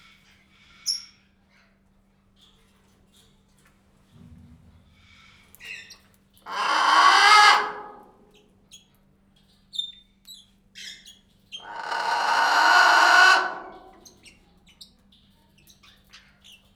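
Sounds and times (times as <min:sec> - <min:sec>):
blue-and-yellow macaw calling at Pécs zoo: 0:06.5 - 0:08.0, 0:11.6 - 0:14.1.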